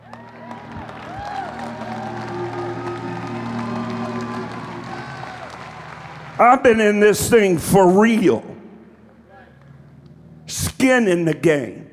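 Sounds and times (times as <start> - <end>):
few people clapping: 0.0 - 7.2
speech: 6.4 - 8.5, 10.8 - 11.8.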